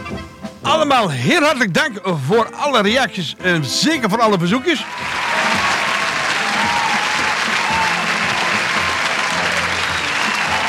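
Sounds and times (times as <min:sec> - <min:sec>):
speech: 0:00.8 - 0:05.3
applause: 0:04.8 - 0:10.6.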